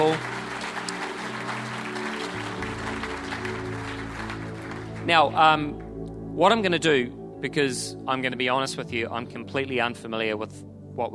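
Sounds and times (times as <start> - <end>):
audience applause: 0.0 - 5.4
speech: 5.1 - 5.8, 6.4 - 11.1.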